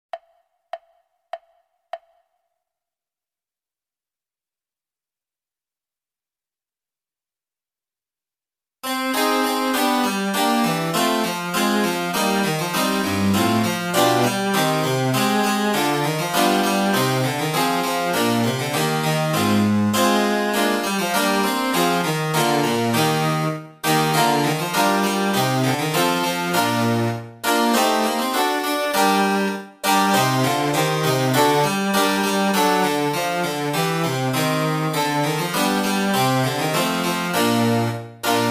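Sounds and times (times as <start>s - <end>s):
oboe sonata: 9.2s - 38.4s.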